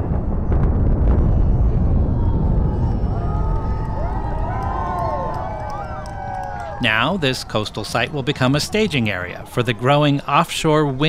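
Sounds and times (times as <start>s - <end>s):
explosive cracks: 0.0s - 6.8s
cooling towers collapsing in a demolition implosion: 0.0s - 10.4s
onlooking crowd cheering and whistling: 2.0s - 10.1s
speech: 6.8s - 11.0s.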